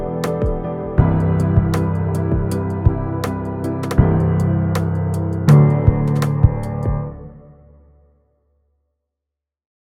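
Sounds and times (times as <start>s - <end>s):
hip hop music: 0.0s - 7.2s.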